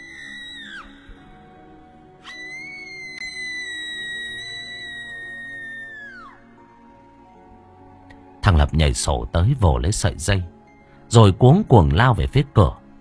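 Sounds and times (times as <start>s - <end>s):
agonized ghostly scream: 0.0s - 1.3s, 2.2s - 6.6s
speech: 8.5s - 12.8s.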